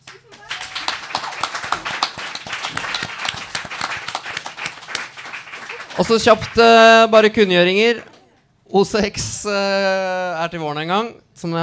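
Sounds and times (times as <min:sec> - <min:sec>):
audience applause: 0:00.0 - 0:07.0
speech: 0:06.0 - 0:08.1, 0:08.7 - 0:11.6.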